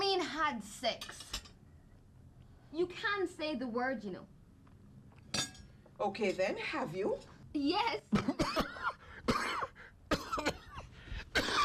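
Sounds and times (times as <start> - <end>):
speech: 0.5 - 1.3, 2.7 - 4.4, 6.0 - 8.6
man coughing and choking on a bone stuck in his throat: 8.1 - 11.6.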